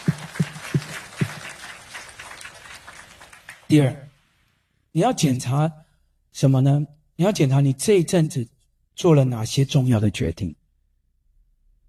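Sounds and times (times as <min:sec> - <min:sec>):
audience clapping hands: 0:00.0 - 0:04.2
speech: 0:03.7 - 0:04.0, 0:05.0 - 0:10.6.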